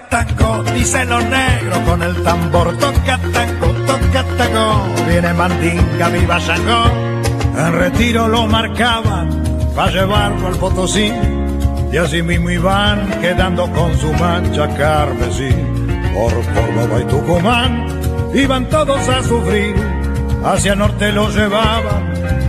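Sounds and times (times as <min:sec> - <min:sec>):
tango music: 0:00.1 - 0:22.4.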